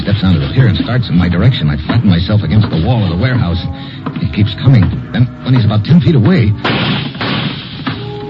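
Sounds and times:
speech: 0.2 - 7.0
gunshots: 6.6 - 8.1.

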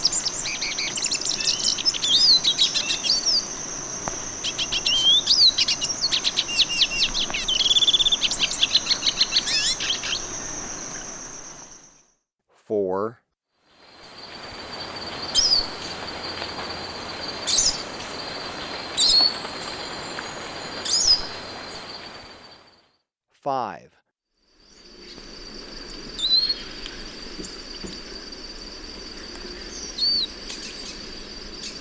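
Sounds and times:
Olivaceous Siskin calling in Ecuador: 0.0 - 11.8, 13.8 - 22.7.

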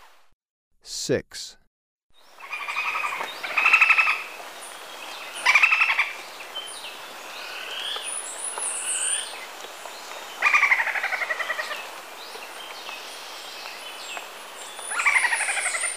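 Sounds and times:
speech: 0.9 - 1.6
other birds high calls: 2.3 - 9.5, 10.2 - 15.9
golden-headed quetzal cackling: 2.4 - 4.3, 5.4 - 6.2, 10.4 - 11.9, 14.9 - 15.9.

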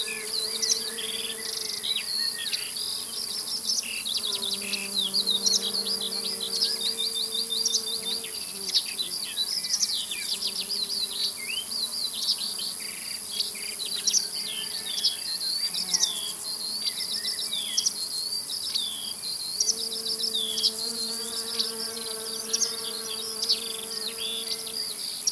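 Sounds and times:
crickets chirping in a field: 0.0 - 25.3
larks singing in a field: 0.0 - 25.3.

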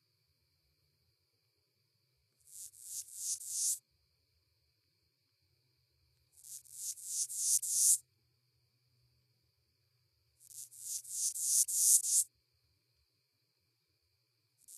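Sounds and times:
North American broad-winged bush katydid rasping song: 6.4 - 8.0, 10.6 - 12.3.

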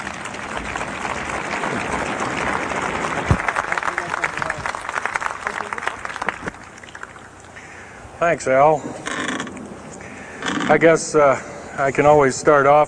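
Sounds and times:
audience applauding to welcome a speaker onto the stage: 0.0 - 7.4
speech: 8.2 - 8.9, 10.7 - 12.8.

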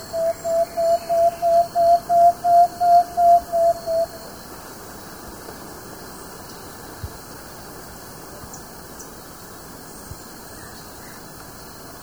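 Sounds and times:
Plain-backed antpitta calling in South America: 0.0 - 4.4.

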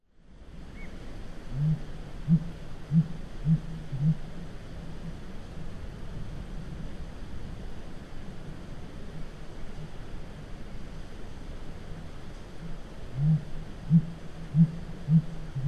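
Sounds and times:
North American blue grouse deep low muffled hoots: 1.5 - 4.2, 13.1 - 15.6.

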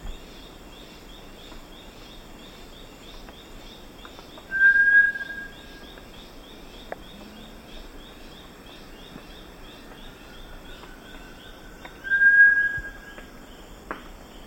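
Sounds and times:
Bartlett's tinamou whistling song: 4.5 - 5.8, 12.0 - 13.2.

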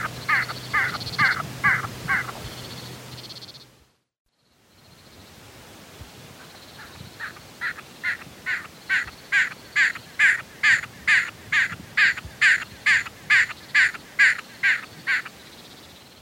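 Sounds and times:
South American snipe calling: 0.0 - 3.6, 6.4 - 15.4.

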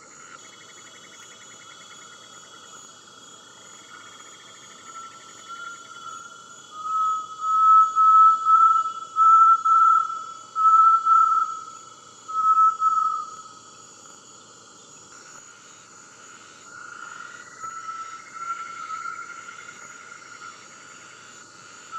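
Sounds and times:
great tinamou singing low whistles in the eastern lowlands of South America: 6.8 - 11.7, 12.3 - 13.4.

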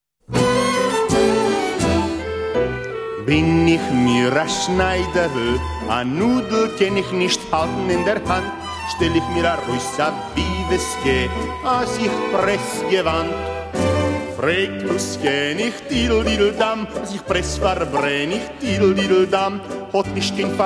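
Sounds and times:
klezmer Yiddish folk songs: 0.3 - 20.6.

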